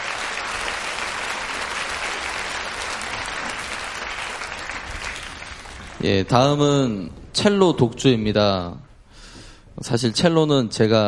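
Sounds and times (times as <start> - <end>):
audience applause for choir: 0.0 - 6.3
speech: 6.0 - 8.9, 9.8 - 11.0.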